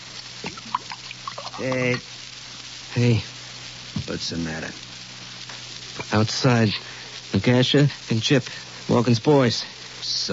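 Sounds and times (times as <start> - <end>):
drink being poured into a glass: 0.4 - 2.0
speech: 1.6 - 2.2, 2.9 - 3.4, 4.1 - 4.9, 6.1 - 10.3.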